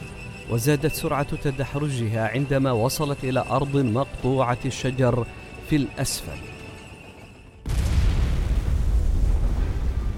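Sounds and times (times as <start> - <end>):
speech: 0.5 - 6.5
explosion: 7.6 - 10.1.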